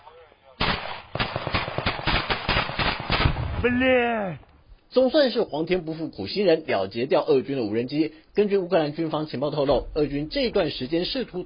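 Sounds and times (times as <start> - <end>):
rifle fire shooting at a drone: 0.6 - 3.6
speech: 3.6 - 11.4.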